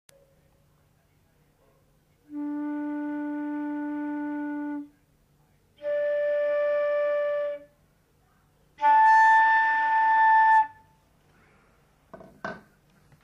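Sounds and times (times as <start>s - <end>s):
flute: 2.3s - 5.0s, 5.8s - 7.8s, 8.8s - 11.0s.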